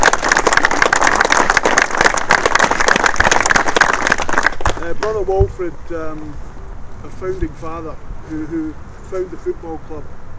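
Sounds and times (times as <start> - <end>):
crowd applauding: 0.0 - 5.1
speech: 5.2 - 10.2.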